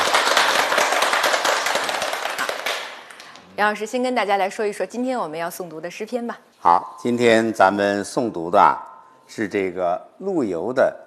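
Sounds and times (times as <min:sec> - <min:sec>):
students applauding a guest professor at a classical poetry recitation: 0:00.0 - 0:03.3
speech: 0:03.6 - 0:11.0.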